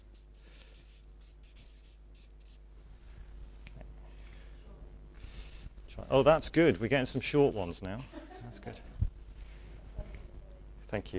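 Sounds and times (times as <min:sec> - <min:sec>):
faint scratching of drawing on a board: 0:00.0 - 0:02.6, 0:06.4 - 0:07.9
steady low hum: 0:00.0 - 0:11.1
speech: 0:06.1 - 0:08.9, 0:10.9 - 0:11.1.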